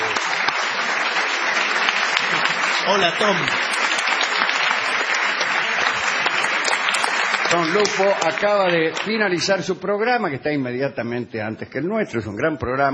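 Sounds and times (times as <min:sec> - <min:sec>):
studio audience applause: 0:00.0 - 0:09.6
speech: 0:02.9 - 0:03.7, 0:07.5 - 0:12.9.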